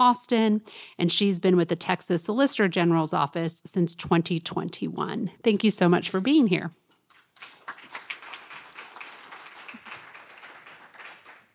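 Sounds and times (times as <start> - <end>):
speech: 0.0 - 6.8
audience clapping: 7.1 - 11.5.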